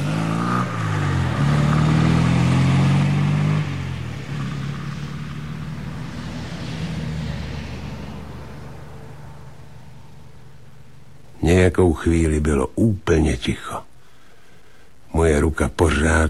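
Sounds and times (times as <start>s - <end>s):
car engine revving as car drives off: 0.0s - 11.3s
speech: 11.5s - 13.9s, 15.1s - 16.2s.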